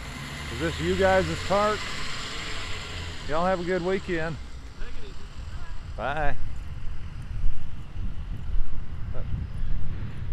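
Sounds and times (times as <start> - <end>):
speech: 0.5 - 2.0, 3.2 - 4.4, 6.0 - 6.5
wind buffeting outdoor microphones in a park: 6.3 - 10.3.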